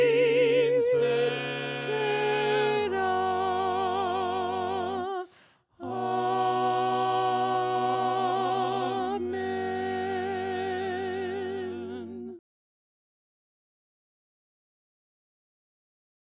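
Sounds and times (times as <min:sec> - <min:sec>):
voices singing a cappella hymn: 0:00.0 - 0:12.4.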